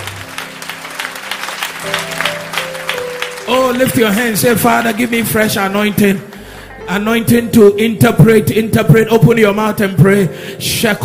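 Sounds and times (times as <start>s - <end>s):
audience clapping hands: 0.0s - 6.7s
speech: 3.5s - 6.3s, 6.9s - 11.0s.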